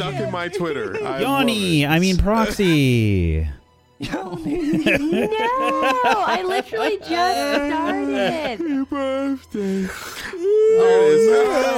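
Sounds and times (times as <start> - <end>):
speech: 0.0 - 11.7
laughter: 4.0 - 9.1
person yawning: 9.6 - 10.9.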